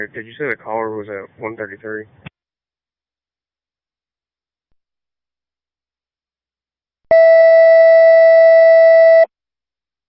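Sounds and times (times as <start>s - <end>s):
speech: 0.0s - 2.3s
Bradley County 911 Center paging equipment test tone: 7.1s - 9.3s.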